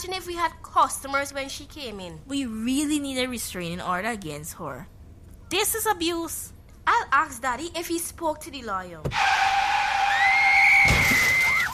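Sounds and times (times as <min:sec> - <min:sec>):
speech: 0:00.0 - 0:09.5
car tire screech: 0:09.1 - 0:10.8.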